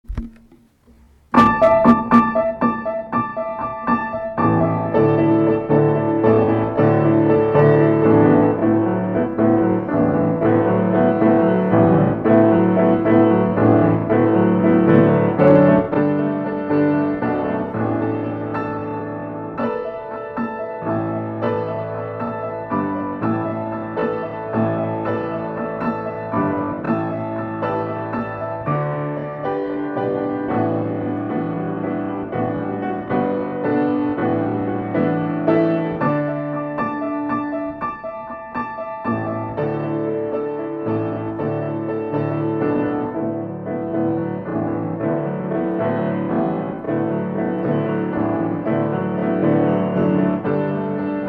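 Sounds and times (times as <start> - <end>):
slow accompaniment: 0.0 - 51.2.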